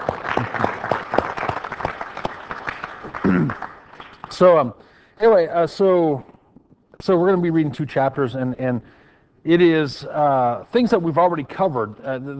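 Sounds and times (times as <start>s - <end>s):
audience applause: 0.0s - 4.4s
speech: 3.3s - 3.6s, 4.3s - 6.3s, 7.0s - 12.3s.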